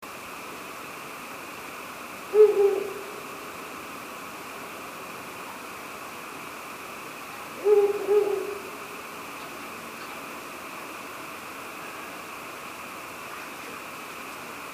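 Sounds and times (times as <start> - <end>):
background hiss: 0.0 - 14.7
Ural owl hooting: 2.2 - 3.6, 7.4 - 9.0.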